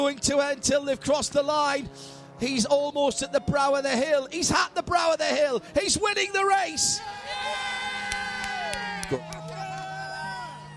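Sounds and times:
speech: 0:00.0 - 0:07.7, 0:09.1 - 0:09.3
race team crew cheering an Alfa Romeo win at Road America: 0:06.5 - 0:10.7.

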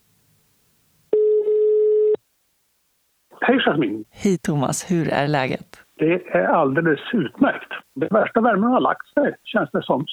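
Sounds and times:
telephone ringing tone as a call is placed: 0:01.1 - 0:02.2
speech: 0:03.5 - 0:10.1.

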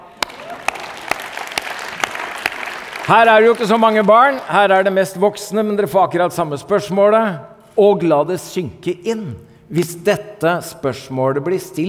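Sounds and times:
audience applause: 0:00.0 - 0:05.0
speech: 0:03.1 - 0:11.8.

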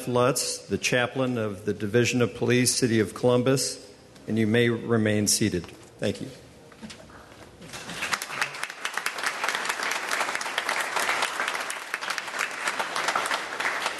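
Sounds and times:
speech: 0:00.0 - 0:07.0
roomful of people applauding: 0:07.7 - 0:13.9.

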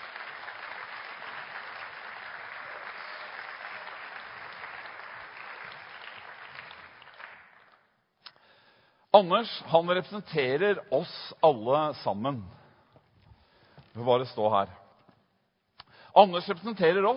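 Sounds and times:
audience applause: 0:00.0 - 0:07.9
speech: 0:09.2 - 0:12.6, 0:14.0 - 0:14.8, 0:16.2 - 0:17.1.

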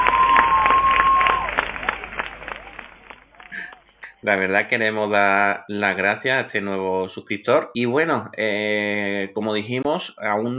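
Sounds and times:
hand clapping: 0:00.0 - 0:04.2
voices cheering: 0:00.0 - 0:07.1
speech: 0:04.2 - 0:10.5.

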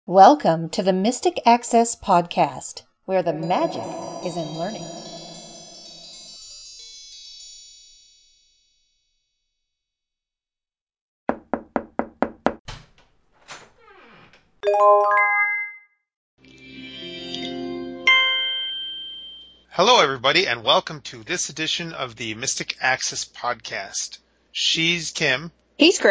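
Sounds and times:
speech: 0:00.1 - 0:05.0, 0:14.8 - 0:15.2, 0:19.8 - 0:26.1
Amazon Tap smart speaker chime: 0:03.2 - 0:06.6, 0:16.5 - 0:19.7.

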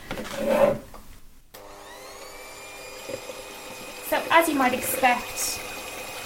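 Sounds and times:
powerful kitchen mixer whipping air into an emulsifier solution: 0:01.6 - 0:06.2
speech: 0:04.2 - 0:05.6.

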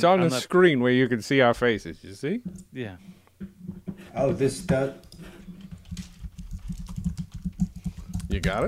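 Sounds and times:
speech: 0:00.0 - 0:03.5, 0:04.2 - 0:05.1, 0:08.3 - 0:08.6
typing on a computer keyboard: 0:05.0 - 0:08.6.

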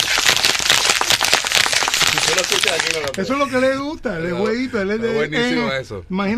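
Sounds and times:
group applause: 0:00.0 - 0:03.2
speech: 0:02.4 - 0:06.3.

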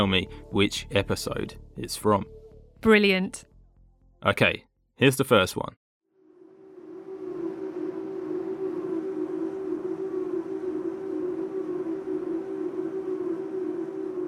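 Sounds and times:
speech: 0:00.0 - 0:03.5, 0:04.2 - 0:05.8
wind turbine: 0:06.2 - 0:14.2.

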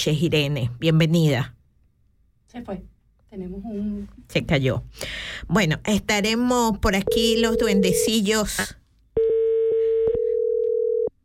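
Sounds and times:
speech: 0:00.0 - 0:01.6, 0:02.5 - 0:09.3
telephone ringback tone while calling: 0:09.2 - 0:11.1.

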